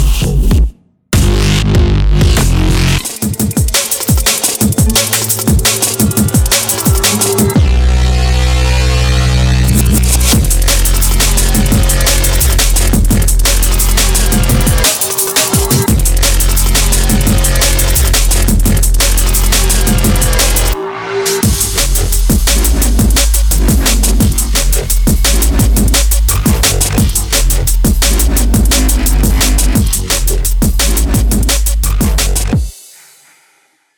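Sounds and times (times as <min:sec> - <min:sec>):
heavy bass drum and bass dubstep music: 0:00.0 - 0:32.7
heavy drum and bass dubstep bass one-shots: 0:01.2 - 0:03.0, 0:07.6 - 0:14.8, 0:15.9 - 0:20.8, 0:21.4 - 0:32.6.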